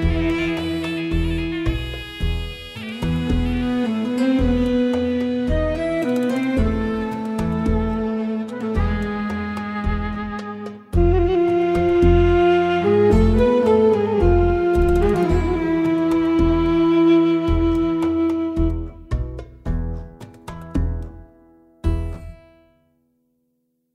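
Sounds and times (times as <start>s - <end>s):
background music: 0.0s - 22.8s.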